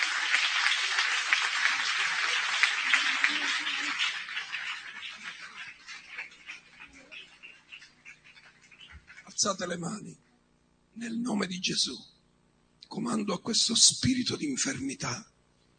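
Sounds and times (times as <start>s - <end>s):
audience applauding: 0.0s - 9.5s
speech: 9.4s - 10.2s, 11.0s - 12.1s, 12.9s - 15.3s.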